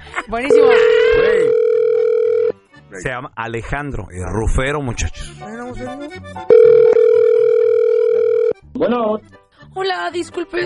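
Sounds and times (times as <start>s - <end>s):
speech: 0.3s - 1.0s, 3.0s - 7.1s, 8.8s - 10.6s
telephone call tone on a prank call: 0.5s - 2.6s, 6.5s - 8.6s.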